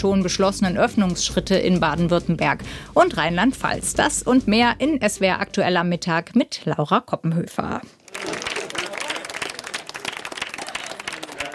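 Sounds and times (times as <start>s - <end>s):
speech: 0.0s - 8.0s
applause from windows and balconies: 8.0s - 11.5s.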